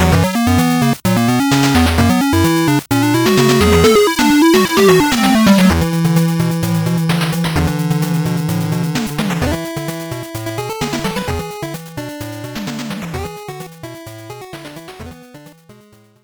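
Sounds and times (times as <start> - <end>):
race theme music: 0.0 - 11.2.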